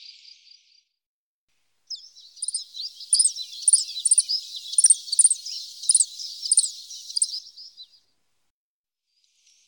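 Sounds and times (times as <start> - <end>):
Common chiffchaff singing: 1.9 - 7.9.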